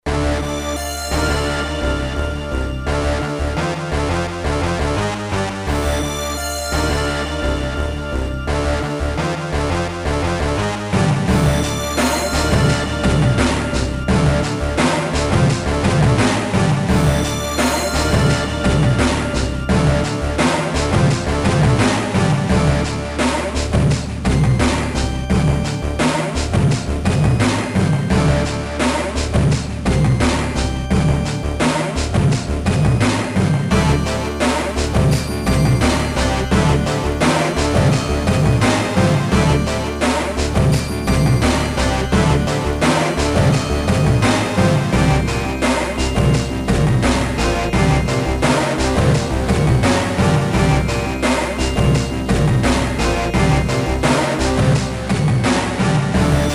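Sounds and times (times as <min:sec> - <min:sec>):
music: 0:00.0 - 0:56.5.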